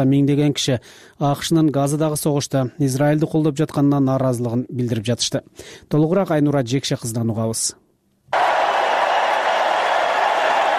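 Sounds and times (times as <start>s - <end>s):
speech: 0.0s - 7.8s
convention crowd applauding Joe Biden taking the stage: 8.3s - 10.7s.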